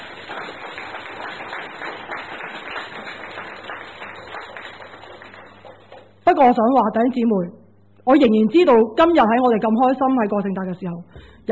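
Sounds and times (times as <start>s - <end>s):
audience applauding: 0.0s - 6.2s
speech: 6.3s - 11.4s.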